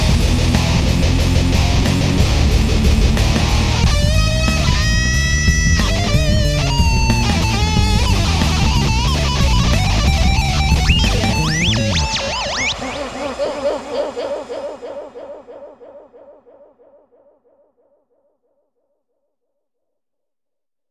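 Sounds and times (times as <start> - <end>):
drum and bass music: 0.0 - 14.4.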